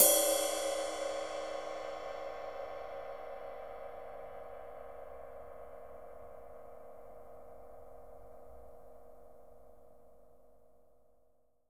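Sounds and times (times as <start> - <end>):
ride cymbal on a drum kit: 0.0 - 4.6.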